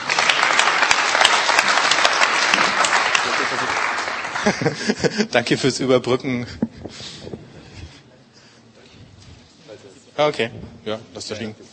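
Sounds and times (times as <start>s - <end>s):
group applauding: 0.0s - 5.3s
laughter: 3.5s - 5.6s
speech: 4.4s - 6.8s, 10.2s - 11.7s.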